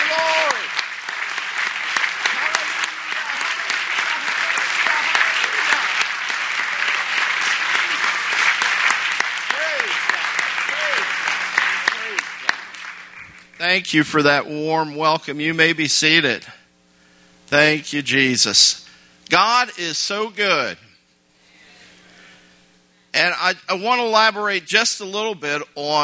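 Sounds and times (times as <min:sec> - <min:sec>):
scattered voices calling out and cheering: 0:00.0 - 0:00.8, 0:02.2 - 0:08.6, 0:09.4 - 0:12.6
loud sustained applause from a large crowd: 0:00.0 - 0:13.6
speech: 0:13.8 - 0:16.6, 0:17.5 - 0:20.8, 0:23.2 - 0:26.0.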